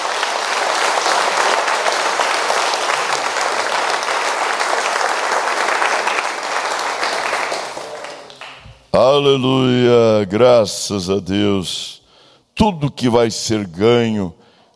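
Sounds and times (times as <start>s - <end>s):
audience applause: 0.0s - 8.6s
speech: 9.0s - 12.0s, 12.6s - 14.7s.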